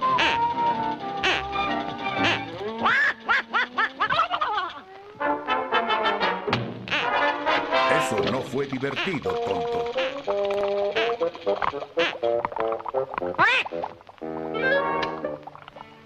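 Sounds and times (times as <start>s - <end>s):
duck decoy call quacking in nasal buzzy blasts: 0.1s - 0.6s, 1.2s - 4.9s, 5.6s - 10.4s, 10.9s - 13.9s
speech: 8.7s - 10.0s, 11.5s - 15.2s.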